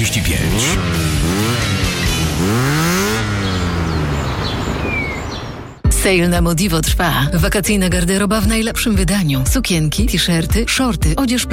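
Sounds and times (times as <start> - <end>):
speech: 0.0 - 2.9, 6.0 - 11.5
motorcycle engine revving and idling: 0.0 - 5.8
faint chirping birds: 1.2 - 5.9.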